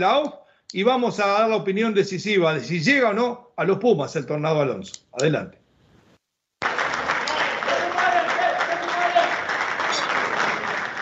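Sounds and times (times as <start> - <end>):
speech: 0.0 - 5.6
audience applause: 6.6 - 11.0.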